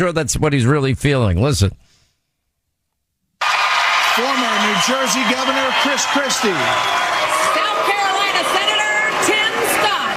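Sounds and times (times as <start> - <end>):
speech: 0.0 - 1.9, 4.2 - 7.3
crowd booing: 3.4 - 10.1.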